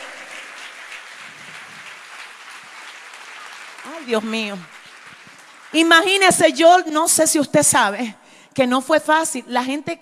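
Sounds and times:
audience applause: 0.0 - 6.2
speech: 3.8 - 4.8, 5.7 - 10.0.

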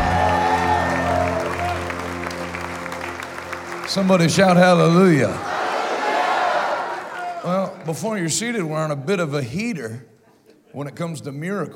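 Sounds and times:
audience clapping: 0.0 - 8.2
sustained music chord: 0.1 - 4.6
speech: 3.9 - 5.5, 7.4 - 10.1, 10.7 - 11.7.

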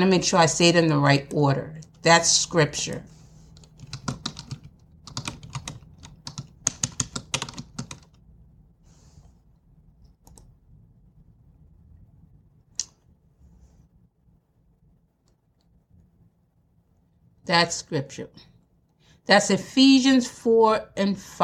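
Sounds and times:
speech: 0.0 - 3.2, 17.5 - 18.5, 19.2 - 21.4
fingers typing a web search on a computer keyboard: 3.6 - 8.2, 10.2 - 10.5.

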